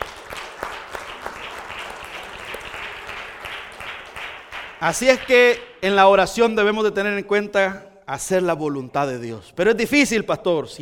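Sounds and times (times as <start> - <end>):
audience applause: 0.0 - 5.4
speech: 4.8 - 10.8.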